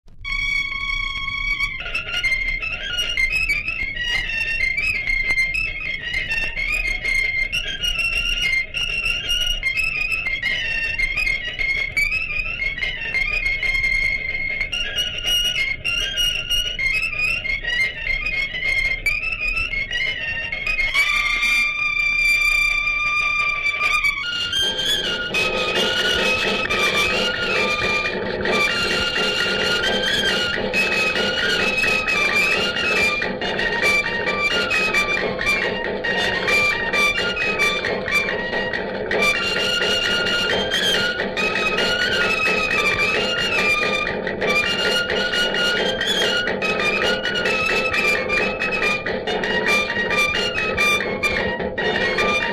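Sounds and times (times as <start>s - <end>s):
piteros whistle music: 0.2s - 52.5s.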